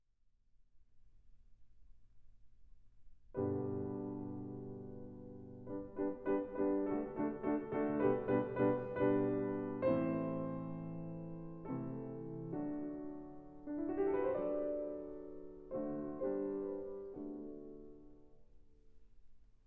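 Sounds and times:
piano concerto: 0:03.4 - 0:19.0.

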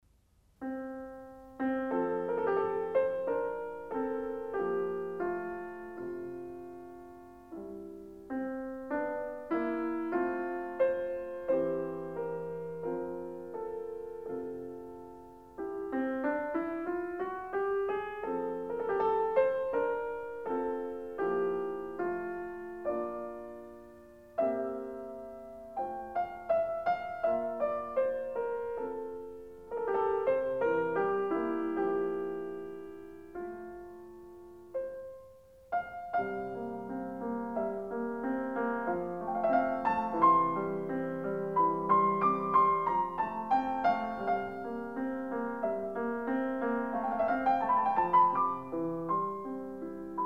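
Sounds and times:
piano sonata: 0:00.0 - 0:50.2.

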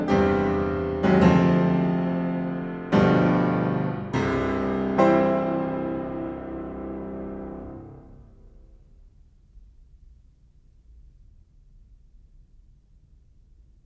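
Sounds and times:
piano prelude in C minor: 0:00.0 - 0:08.6.

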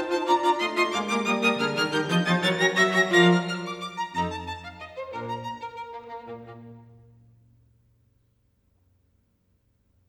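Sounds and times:
string quartet: 0:00.0 - 0:07.3.

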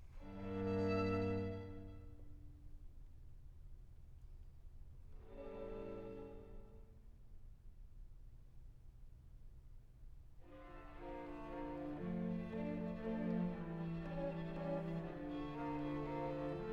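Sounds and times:
string quartet playing an adagio: 0:00.2 - 0:02.3, 0:05.3 - 0:06.7, 0:10.5 - 0:16.7.

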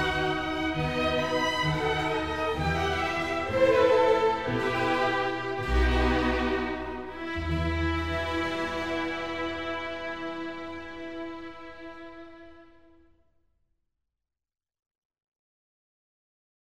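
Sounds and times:
flute concerto in G minor: 0:00.0 - 0:12.8.

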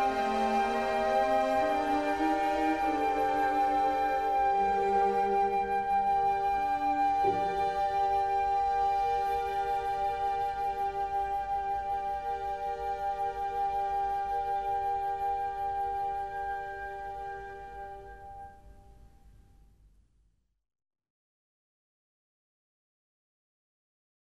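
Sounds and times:
piano nocturne in E flat: 0:00.0 - 0:19.1.

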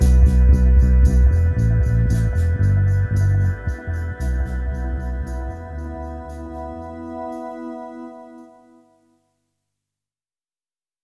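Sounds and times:
dub music: 0:00.0 - 0:08.4.

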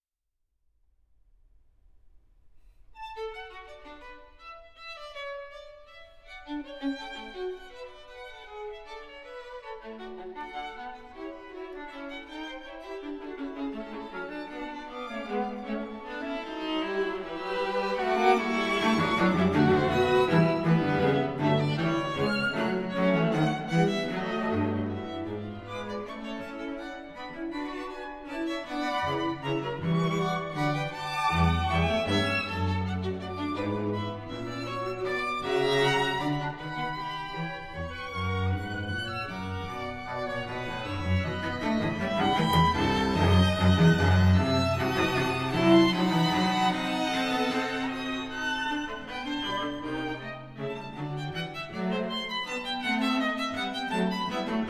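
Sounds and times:
string quintet playing fugue in D major: 0:09.1 - 0:54.6.

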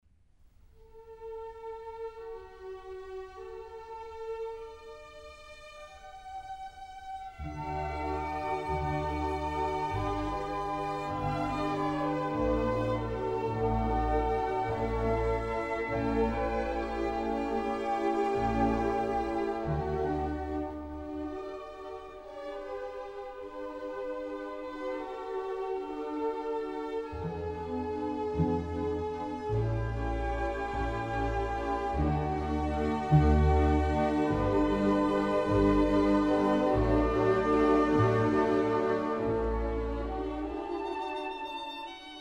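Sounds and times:
violin concerto in G major: 0:00.9 - 0:42.2.

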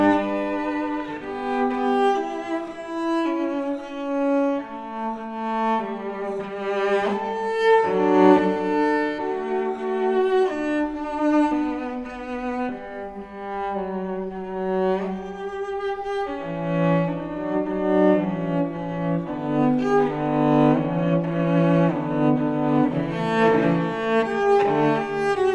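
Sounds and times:
solo cello suite: 0:00.0 - 0:25.5.

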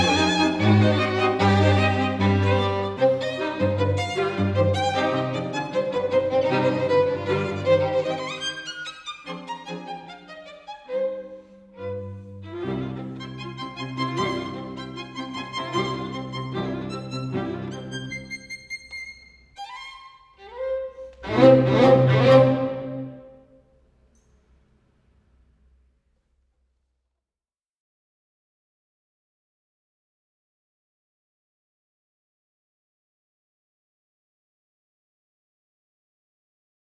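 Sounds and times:
string quartet in C minor allegro: 0:00.0 - 0:23.4.

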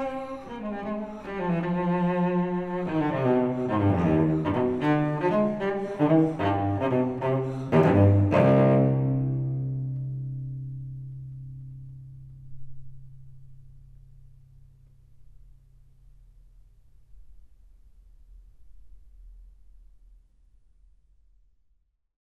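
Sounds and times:
solo cello suite in C minor: 0:00.0 - 0:12.4.

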